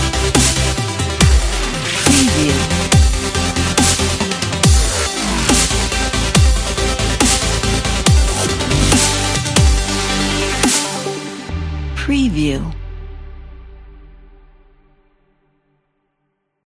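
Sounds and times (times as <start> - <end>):
motivational dubstep music: 0.0 - 12.7.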